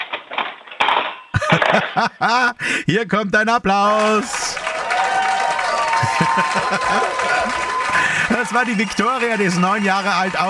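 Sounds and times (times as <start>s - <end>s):
forks dropped into a kitchen drawer: 0.0s - 2.1s
laughter: 1.3s - 10.4s
speech: 1.7s - 4.6s, 6.3s - 10.4s.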